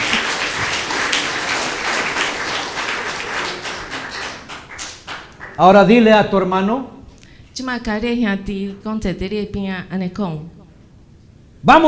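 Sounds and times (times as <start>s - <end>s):
audience applause: 0.0s - 5.7s
speech: 5.6s - 6.9s, 7.6s - 10.6s, 11.6s - 11.8s.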